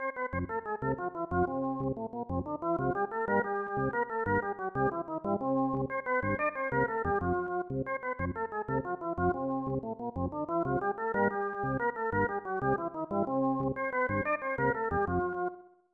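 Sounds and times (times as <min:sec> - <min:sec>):
Mexican folk dance tune: 0:00.0 - 0:15.6.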